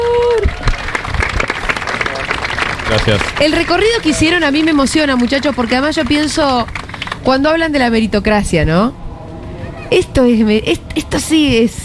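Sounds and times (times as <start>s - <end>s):
audience applause: 0.0s - 7.4s
speech: 3.1s - 9.0s, 9.9s - 11.8s.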